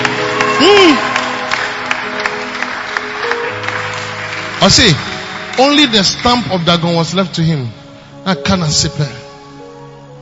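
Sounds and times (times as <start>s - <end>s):
audience clapping: 0.0s - 7.6s
vocal whoop: 0.4s - 1.4s
speech: 4.6s - 9.2s.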